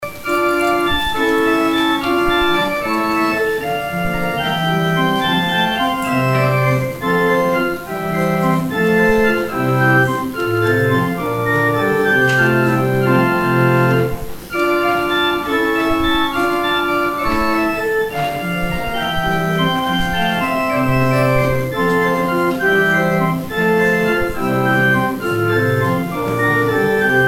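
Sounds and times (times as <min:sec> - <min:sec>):
organ interlude: 0:00.0 - 0:27.2.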